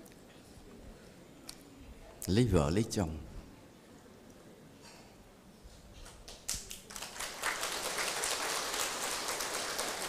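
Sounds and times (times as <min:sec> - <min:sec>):
speech: 0:02.3 - 0:03.3
audience clapping: 0:06.2 - 0:10.0.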